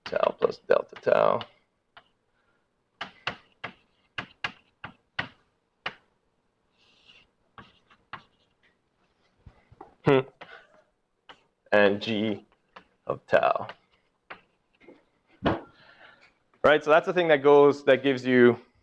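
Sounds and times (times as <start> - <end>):
speech: 0.1 - 1.5, 10.1 - 10.3, 11.9 - 12.5, 13.1 - 13.8, 16.6 - 18.7
writing an equation on a board: 0.1 - 2.2, 3.0 - 6.1, 6.8 - 8.7, 12.4 - 14.8.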